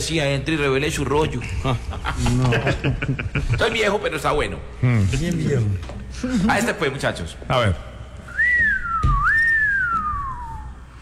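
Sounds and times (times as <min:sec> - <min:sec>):
speech: 0:00.0 - 0:07.9
laughter: 0:01.4 - 0:04.0
whistled siren sound effect: 0:08.3 - 0:10.8.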